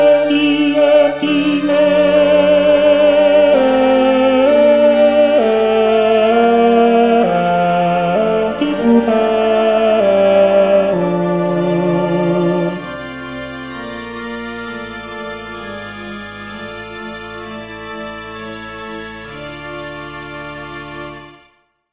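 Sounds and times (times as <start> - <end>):
choral singing: 0.0 - 13.4.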